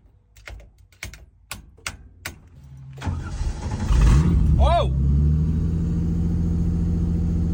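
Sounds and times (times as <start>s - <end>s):
supercharged car engine starting and running: 1.8s - 7.5s.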